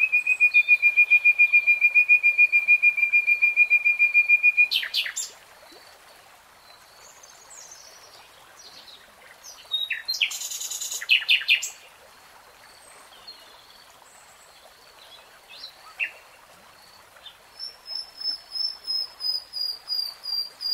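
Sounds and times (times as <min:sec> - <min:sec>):
nightingale song: 0:00.0 - 0:05.4, 0:06.6 - 0:11.9, 0:17.2 - 0:20.7.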